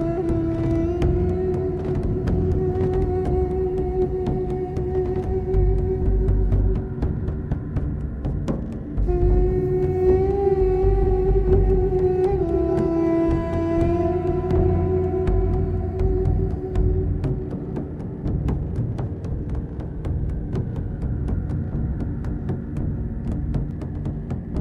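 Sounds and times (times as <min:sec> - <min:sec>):
ambient music: 0:00.0 - 0:24.5.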